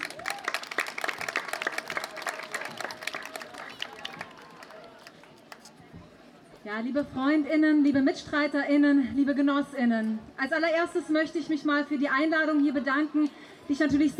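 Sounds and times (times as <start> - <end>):
audience applause: 0.0 - 5.7
speech: 6.7 - 14.1.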